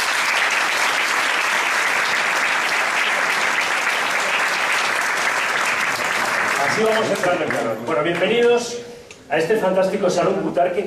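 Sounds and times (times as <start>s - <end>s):
audience applause: 0.0s - 7.8s
speech: 6.8s - 10.8s.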